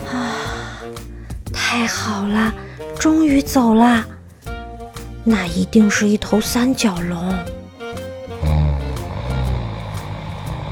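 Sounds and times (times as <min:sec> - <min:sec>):
speech: 0:01.7 - 0:04.1, 0:05.2 - 0:07.6
giant snoring: 0:08.3 - 0:10.7.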